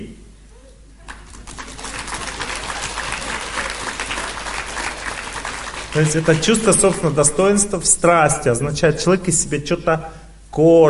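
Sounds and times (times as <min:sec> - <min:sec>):
audience clapping: 0:01.0 - 0:07.4
speech: 0:06.0 - 0:10.8.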